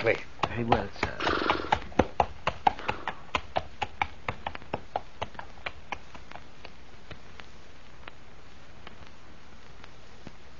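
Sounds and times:
speech: 0:00.0 - 0:01.4
horse hooves clip-clopping at walking pace: 0:00.0 - 0:08.2.

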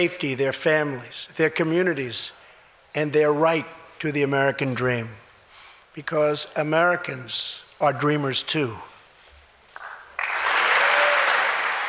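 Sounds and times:
speech: 0:00.0 - 0:05.2, 0:06.0 - 0:08.9
applause and cheering in legislative chamber: 0:09.8 - 0:11.8.

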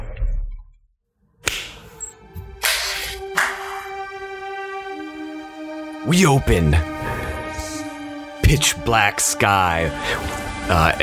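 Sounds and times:
hand clapping: 0:01.4 - 0:01.8, 0:02.6 - 0:04.0
speech: 0:06.0 - 0:07.0, 0:08.5 - 0:11.0.

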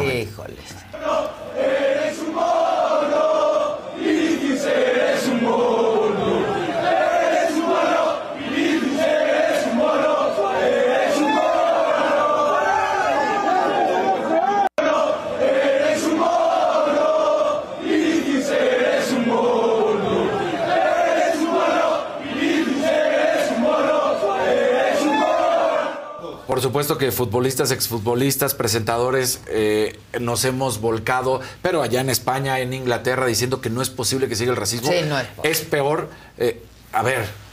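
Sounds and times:
speech: 0:00.2 - 0:02.5, 0:26.6 - 0:37.4
stadium crowd chant outside the stadium: 0:00.9 - 0:26.4.

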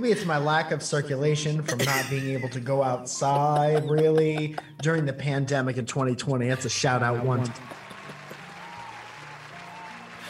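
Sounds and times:
speech: 0:00.0 - 0:07.8
laughter: 0:01.8 - 0:09.2
arena crowd applause sound effect: 0:06.5 - 0:10.2.

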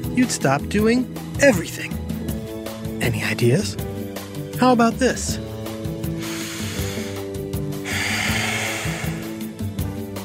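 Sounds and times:
speech: 0:00.0 - 0:02.1, 0:03.0 - 0:03.9, 0:04.6 - 0:05.4
human breathing: 0:06.2 - 0:09.5.

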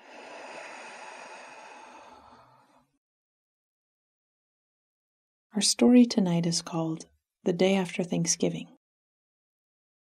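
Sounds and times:
slow breath during a guided relaxation exercise: 0:00.0 - 0:03.0
speech: 0:05.6 - 0:08.8.

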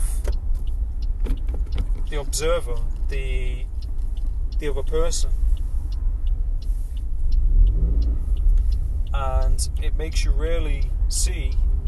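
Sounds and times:
car engine rumble: 0:00.0 - 0:11.8
soft ticking: 0:00.0 - 0:11.8
speech: 0:02.1 - 0:03.7, 0:04.6 - 0:05.4, 0:09.2 - 0:11.6.

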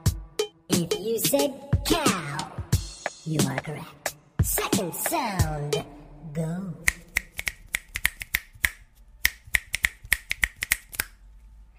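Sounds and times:
speech: 0:00.8 - 0:02.5, 0:03.2 - 0:06.9
finger snapping: 0:06.9 - 0:11.2.

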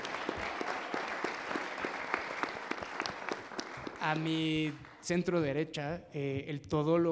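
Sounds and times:
audience applauding: 0:00.0 - 0:05.4
speech: 0:04.0 - 0:07.0.

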